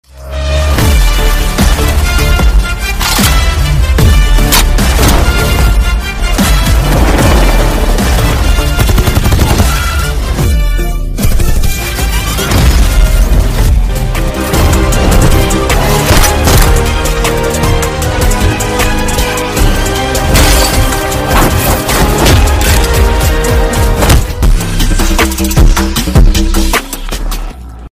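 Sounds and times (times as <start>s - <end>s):
trailer background music ringtone: 0.0s - 27.9s.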